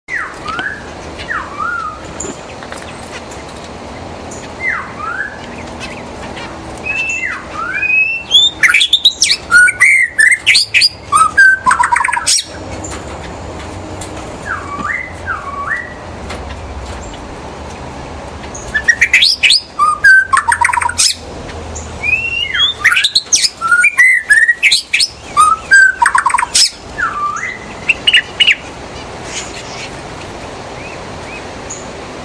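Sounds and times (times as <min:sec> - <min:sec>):
white-rumped shama song: 0:00.1 - 0:02.0, 0:04.6 - 0:05.4, 0:06.8 - 0:12.5, 0:14.4 - 0:16.0, 0:18.7 - 0:21.1, 0:22.0 - 0:28.2.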